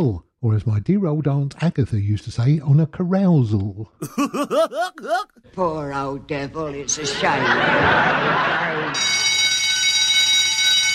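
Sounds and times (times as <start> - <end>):
speech: 0.0 - 9.2
laughter: 4.0 - 5.3, 7.0 - 9.0
warning bell ringing: 9.0 - 10.9.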